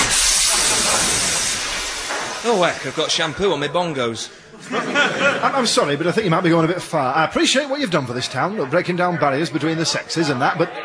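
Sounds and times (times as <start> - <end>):
espresso machine hissing steam: 0.0 - 3.4
laughter: 0.3 - 1.5, 4.4 - 6.8, 7.8 - 10.8
speech: 2.4 - 10.8.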